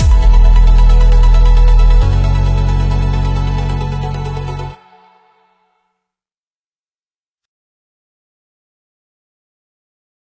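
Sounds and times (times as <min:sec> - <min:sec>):
melodic trance music: 0:00.0 - 0:05.5.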